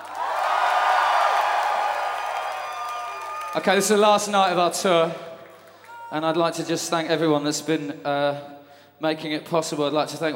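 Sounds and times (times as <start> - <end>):
crowd cheering and whooping: 0.0 - 4.0
audience applause: 0.0 - 4.3
speech: 3.6 - 5.3, 6.1 - 10.3.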